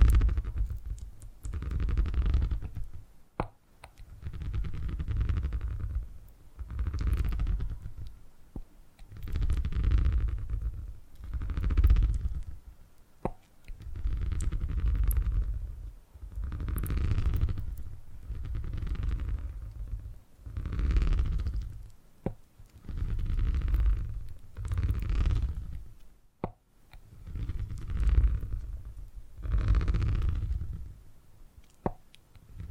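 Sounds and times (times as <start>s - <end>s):
purring: 0.0s - 3.0s, 4.0s - 8.1s, 9.1s - 12.6s, 13.8s - 21.9s, 22.7s - 25.9s, 27.2s - 31.0s, 32.4s - 32.6s
faint clicks and taps: 0.0s - 30.9s, 31.6s - 32.6s.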